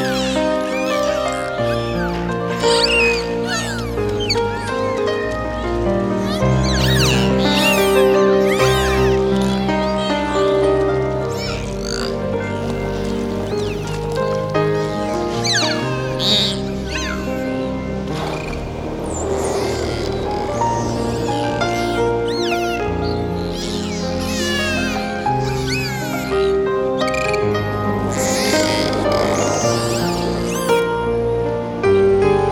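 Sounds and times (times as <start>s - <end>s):
nature ambience: 0.0s - 32.4s
seagulls calling: 0.0s - 32.4s.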